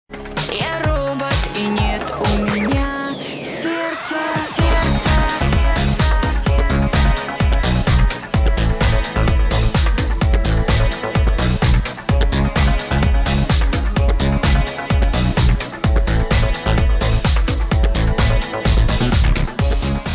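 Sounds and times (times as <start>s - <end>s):
club music: 0.1s - 20.1s.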